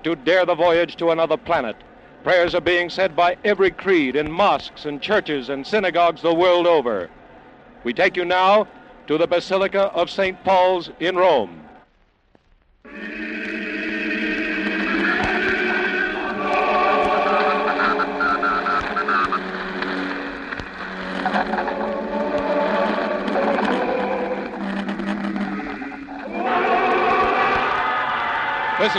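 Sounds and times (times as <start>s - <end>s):
speech: 0.0s - 7.2s, 7.8s - 11.7s
crowd roaring: 12.9s - 28.9s.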